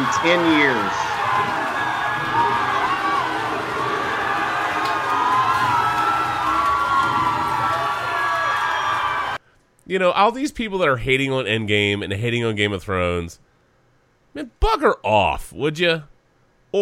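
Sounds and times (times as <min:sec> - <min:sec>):
large crowd cheering and shouting: 0:00.0 - 0:09.4
speech: 0:00.2 - 0:01.5, 0:09.9 - 0:13.4, 0:14.3 - 0:16.1.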